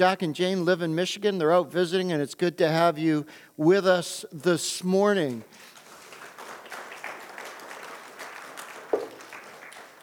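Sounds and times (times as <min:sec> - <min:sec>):
speech: 0:00.0 - 0:05.7
audience clapping: 0:05.5 - 0:10.0.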